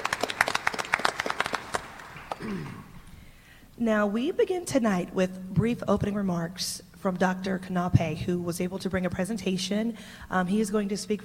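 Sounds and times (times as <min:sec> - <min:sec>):
audience applause: 0:00.0 - 0:02.8
speech: 0:03.8 - 0:11.2.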